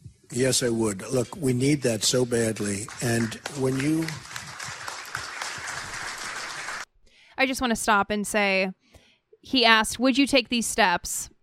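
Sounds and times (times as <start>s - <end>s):
speech: 0.3s - 4.3s, 7.4s - 8.8s, 9.4s - 11.3s
audience clapping: 1.5s - 6.9s.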